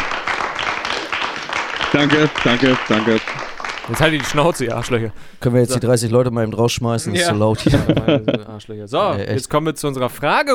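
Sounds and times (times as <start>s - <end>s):
audience applause: 0.0s - 5.0s
speech: 1.9s - 10.5s
laughter: 7.2s - 8.6s.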